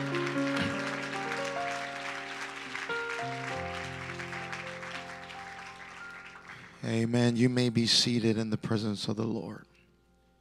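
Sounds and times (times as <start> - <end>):
audience clapping hands: 0.0 - 7.2
speech: 6.8 - 9.7.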